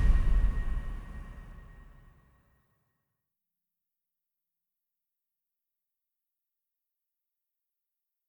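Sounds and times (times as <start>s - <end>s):
percussion: 0.0s - 2.2s.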